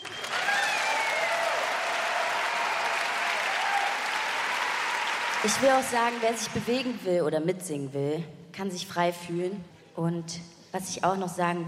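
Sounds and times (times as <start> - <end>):
concert audience applause: 0.0 - 6.5
speech: 5.4 - 11.6.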